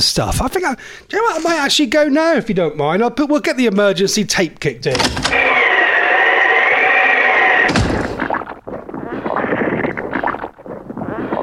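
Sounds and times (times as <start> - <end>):
speech: 0.0 - 5.4
squelchy footsteps on driveway: 5.1 - 11.4.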